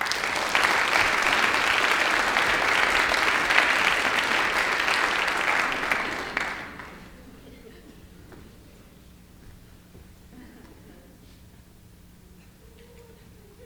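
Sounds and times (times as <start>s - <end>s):
audience applause: 0.0s - 7.5s.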